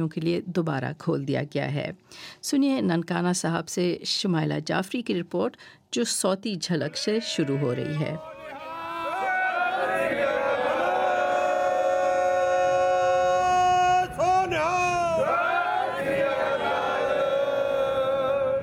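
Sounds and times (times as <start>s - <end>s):
speech: 0.0s - 8.3s
Sikh pilgrims chanting slogans: 6.9s - 13.4s, 14.0s - 18.6s.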